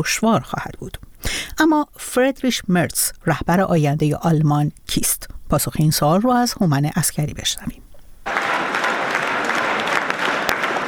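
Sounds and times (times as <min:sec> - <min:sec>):
speech: 0:00.0 - 0:07.8
Friedrich Merz supporters applauding after German election result: 0:08.3 - 0:10.8.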